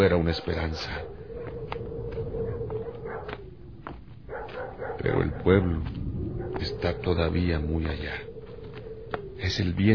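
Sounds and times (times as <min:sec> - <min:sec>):
speech: 0:00.0 - 0:01.2, 0:05.0 - 0:06.0, 0:06.6 - 0:08.3, 0:09.4 - 0:09.9
dogs barking: 0:00.0 - 0:09.4.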